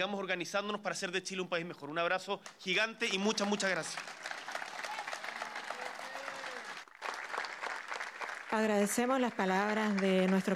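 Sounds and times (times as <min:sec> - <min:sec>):
speech: 0:00.0 - 0:04.2, 0:08.5 - 0:10.5
audience applause: 0:03.1 - 0:10.5.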